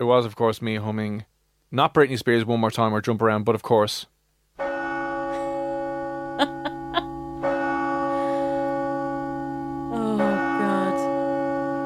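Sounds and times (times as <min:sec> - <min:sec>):
speech: 0:00.0 - 0:04.1
church bell ringing: 0:04.6 - 0:11.8.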